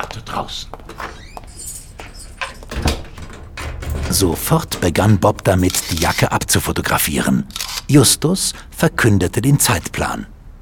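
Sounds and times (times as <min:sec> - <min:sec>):
speech: 0:00.2 - 0:01.2, 0:04.1 - 0:10.3
key locking a room door: 0:00.9 - 0:06.4.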